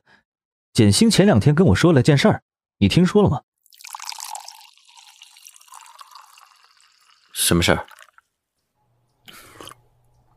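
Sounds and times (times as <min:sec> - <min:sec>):
speech: 0:00.8 - 0:03.5, 0:07.5 - 0:08.0
sipping a mouthful of water: 0:03.6 - 0:08.3, 0:09.2 - 0:10.3
faint swallow: 0:09.3 - 0:09.9.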